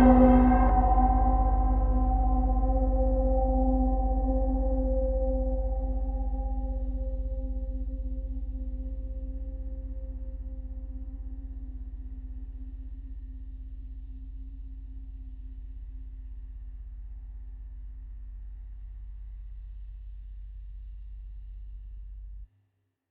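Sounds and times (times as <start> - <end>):
cassette piano: 0.0 - 12.0.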